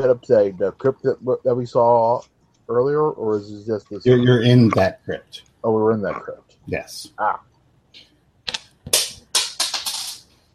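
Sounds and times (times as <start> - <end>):
speech: 0.0 - 7.5
dropped dice clattering: 8.9 - 10.3.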